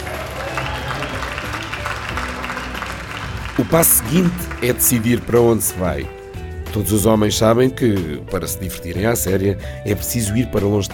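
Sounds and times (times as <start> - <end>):
audience applause: 0.0 - 5.6
speech: 3.6 - 6.2, 6.8 - 10.9.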